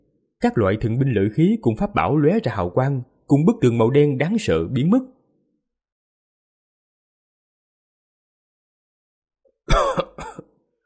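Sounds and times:
speech: 0:00.4 - 0:05.2
person coughing up blood: 0:09.7 - 0:10.6.

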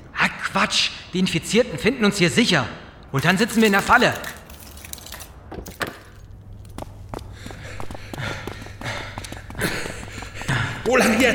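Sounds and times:
speech: 0:00.5 - 0:04.4
heavy panting: 0:07.2 - 0:11.0.

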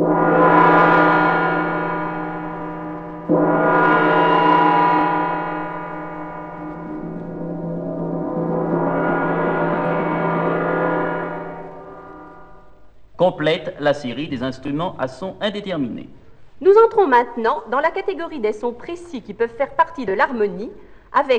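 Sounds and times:
gong struck and ringing: 0:00.0 - 0:13.0
speech: 0:13.2 - 0:21.3.

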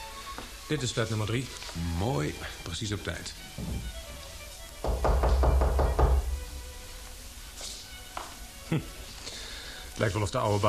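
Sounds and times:
speech: 0:00.4 - 0:04.0, 0:08.7 - 0:09.0, 0:10.0 - 0:10.6
knocking on apartment door of flat number 3: 0:03.6 - 0:04.1, 0:04.8 - 0:06.6.

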